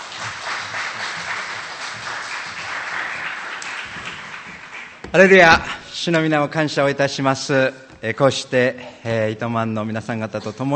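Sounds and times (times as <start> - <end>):
audience applause: 0.0 - 5.7
speech: 5.1 - 10.7.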